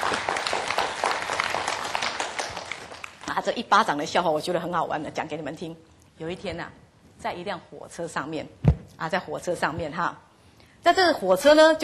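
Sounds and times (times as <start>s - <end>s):
audience applause: 0.0s - 3.2s
speech: 3.4s - 11.8s.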